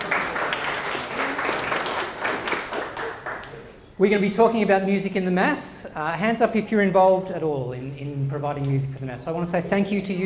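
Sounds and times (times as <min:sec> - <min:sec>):
audience applause: 0:00.0 - 0:03.6
speech: 0:04.0 - 0:10.2.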